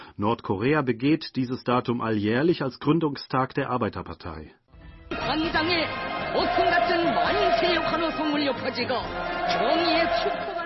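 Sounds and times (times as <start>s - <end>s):
speech: 0.2s - 4.6s, 5.3s - 10.6s
large crowd cheering and shouting: 5.1s - 10.6s.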